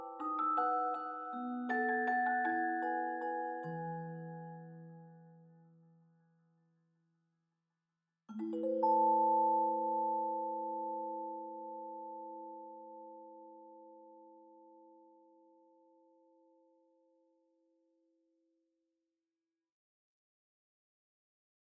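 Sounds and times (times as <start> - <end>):
bell theme melody: 0.0 - 4.8, 8.3 - 14.6.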